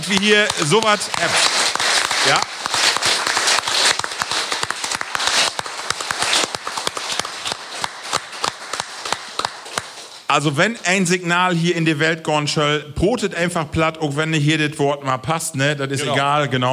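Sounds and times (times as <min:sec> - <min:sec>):
audience applause: 0:00.0 - 0:10.3
speech: 0:00.1 - 0:02.6, 0:10.3 - 0:16.7.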